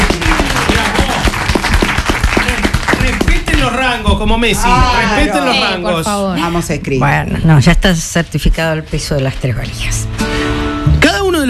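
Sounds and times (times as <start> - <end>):
crowd applauding: 0.0 - 5.2
speech: 4.2 - 10.6.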